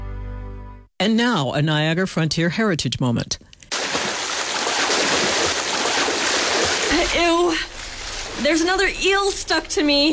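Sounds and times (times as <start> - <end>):
speech: 1.0 - 3.4, 7.1 - 7.7, 8.4 - 10.1
water splashing from a swimmer in a lake: 3.7 - 10.0.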